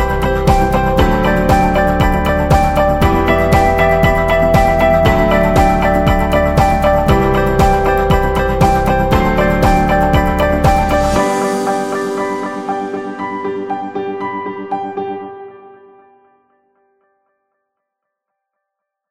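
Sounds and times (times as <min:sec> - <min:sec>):
simple corporate background music: 0:00.0 - 0:14.8.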